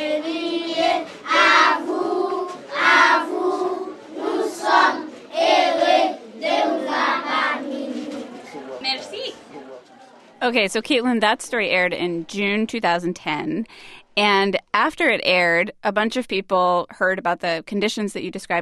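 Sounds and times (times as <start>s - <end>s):
schoolchildren singing a welcome song: 0.0s - 8.5s
speech: 10.5s - 18.6s.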